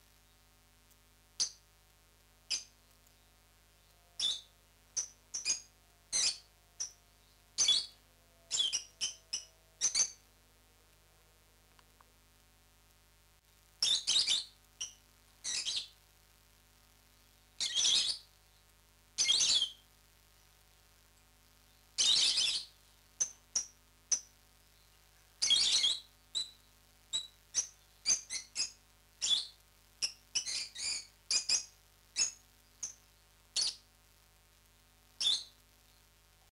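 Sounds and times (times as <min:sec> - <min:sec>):
lovebird chirps, parrots Agapornis: 0:02.5 - 0:03.3, 0:04.2 - 0:10.2, 0:13.8 - 0:15.9, 0:17.6 - 0:18.3, 0:19.2 - 0:19.8, 0:21.7 - 0:33.8, 0:35.2 - 0:36.0.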